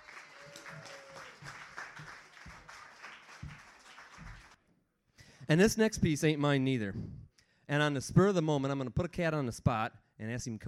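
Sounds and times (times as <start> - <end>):
audience applause for poet coming onstage: 0.0 - 4.6
speech: 5.5 - 10.6.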